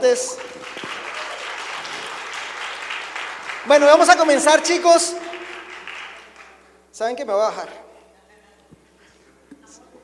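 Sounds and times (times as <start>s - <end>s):
speech: 0.0s - 1.0s, 3.6s - 5.2s, 7.0s - 7.8s
audience applause: 0.0s - 6.8s.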